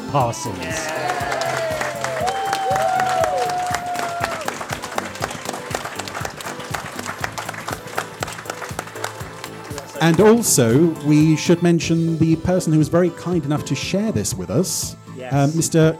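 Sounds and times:
speech: 0.1s - 1.3s, 10.0s - 15.9s
whistles and cheers: 0.3s - 4.6s
audience applause: 0.6s - 10.4s.

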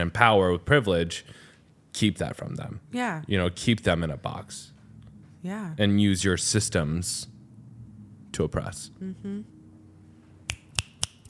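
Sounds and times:
speech: 0.0s - 1.4s, 2.0s - 4.8s, 5.4s - 7.3s, 8.4s - 9.6s
finger snaps: 10.5s - 11.2s.

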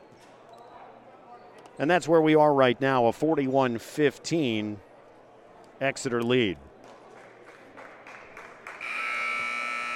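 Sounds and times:
crowd noise in a gym: 0.0s - 9.9s
speech: 1.8s - 4.9s, 5.8s - 6.7s
basketball game electronic buzzer: 8.8s - 9.9s.

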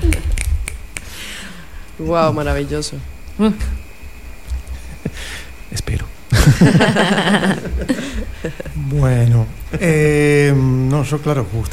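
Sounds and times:
audience finger snapping: 0.0s - 1.2s
speech: 2.0s - 3.8s, 5.7s - 11.7s
laughter: 4.7s - 5.5s, 6.3s - 9.0s.

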